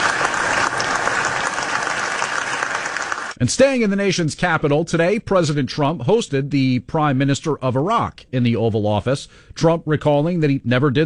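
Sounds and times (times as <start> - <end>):
applause in the Senate chamber: 0.0 - 3.4
speech: 3.4 - 11.0.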